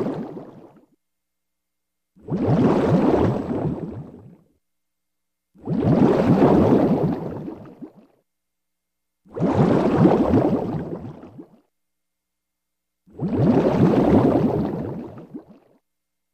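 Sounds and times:
bubbles released: 0.0s - 0.9s, 2.2s - 4.4s, 5.6s - 8.2s, 9.3s - 11.6s, 13.1s - 15.8s.

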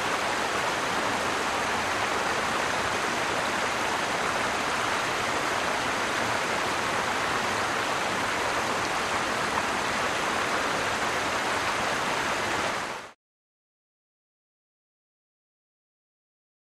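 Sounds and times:
fast-moving river: 0.0s - 13.2s.

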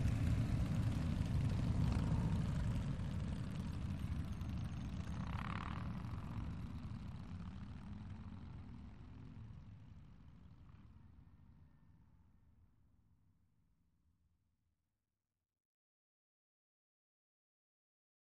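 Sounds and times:
multiple Harley Davidson motorcycle engines: 0.0s - 9.4s.

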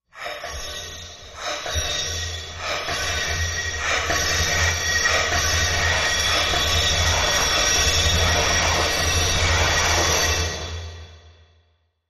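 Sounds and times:
alien ice cream maker machine: 1.3s - 10.5s.

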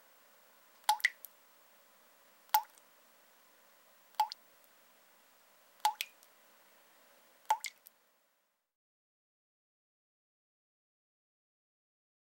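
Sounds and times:
water dripping in a sink or tub: 0.8s - 1.4s, 2.5s - 2.8s, 4.2s - 4.4s, 5.8s - 6.3s, 7.5s - 7.9s.

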